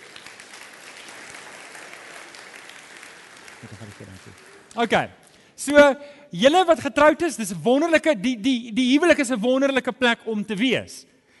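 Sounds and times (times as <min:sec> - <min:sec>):
audience applause: 0:00.0 - 0:05.0
speech: 0:03.6 - 0:11.1.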